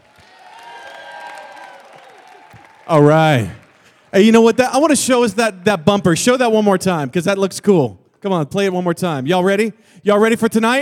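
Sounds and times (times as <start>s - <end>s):
crowd cheering and whooping: 0.0s - 4.2s
crowd applauding: 0.0s - 6.6s
speech: 2.9s - 10.7s.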